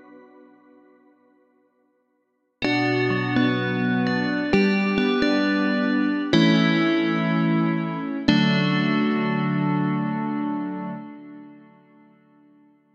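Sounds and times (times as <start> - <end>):
Rhodes electric piano: 2.6 - 12.4.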